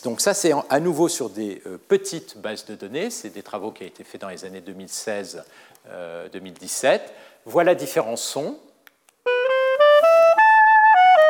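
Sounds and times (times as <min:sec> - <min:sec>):
speech: 0:00.0 - 0:08.7
solo clarinet phrase: 0:09.2 - 0:11.2.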